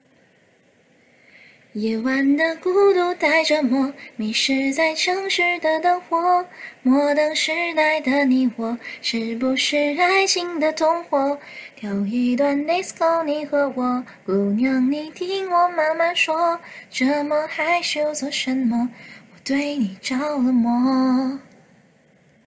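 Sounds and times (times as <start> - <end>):
a cappella singing: 1.7 - 21.7.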